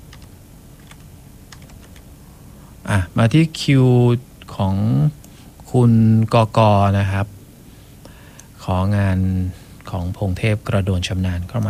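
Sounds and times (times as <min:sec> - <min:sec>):
typing on a computer keyboard: 0:00.0 - 0:02.0
low hum: 0:00.0 - 0:11.6
speech: 0:02.9 - 0:07.4, 0:08.7 - 0:11.6.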